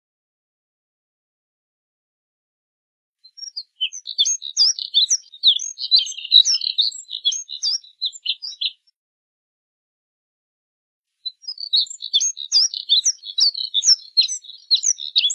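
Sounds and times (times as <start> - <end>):
Moussier's redstart twittering warble: 3.3 - 8.8, 11.3 - 15.3.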